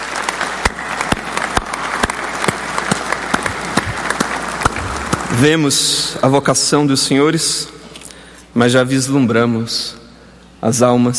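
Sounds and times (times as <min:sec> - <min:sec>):
applause: 0:00.0 - 0:05.8
speech: 0:05.3 - 0:07.8, 0:08.6 - 0:10.0, 0:10.6 - 0:11.1.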